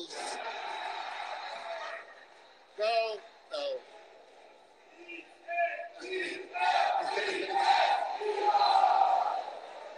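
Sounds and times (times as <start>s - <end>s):
large crowd chanting defense: 0.1s - 2.4s, 4.8s - 9.9s.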